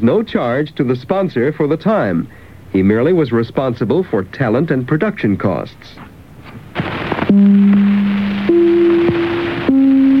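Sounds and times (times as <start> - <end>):
speech: 0.0 - 6.1, 7.3 - 8.0
radio network identification chimes from the early 30s: 7.3 - 10.1.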